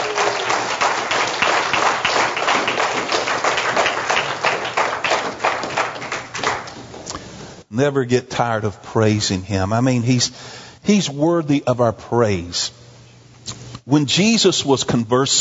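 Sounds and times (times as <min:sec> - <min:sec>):
audience applause: 0:00.0 - 0:07.0
speech: 0:07.8 - 0:12.8, 0:13.9 - 0:15.3.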